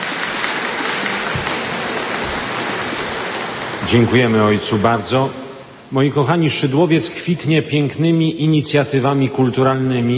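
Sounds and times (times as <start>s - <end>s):
audience applause: 0.0s - 5.1s
speech: 3.9s - 10.1s.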